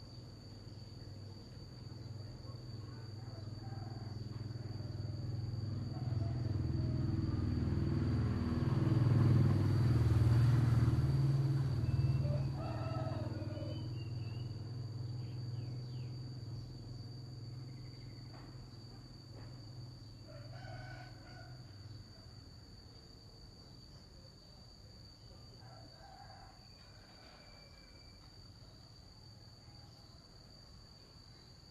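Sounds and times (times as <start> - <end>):
morning ambience in Vietnam: 0.0 - 31.6.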